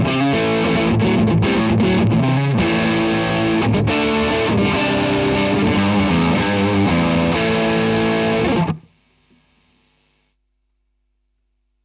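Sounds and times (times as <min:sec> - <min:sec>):
gain guitar riff: 0:00.0 - 0:10.2.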